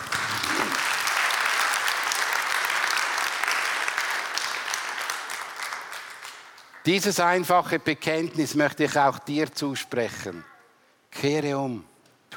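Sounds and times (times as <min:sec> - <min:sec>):
audience applause: 0:00.0 - 0:06.8
speech: 0:06.9 - 0:10.5, 0:11.2 - 0:12.3.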